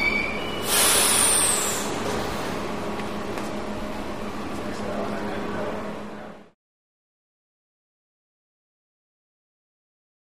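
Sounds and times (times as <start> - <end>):
subway train at platform: 0.0 - 6.6.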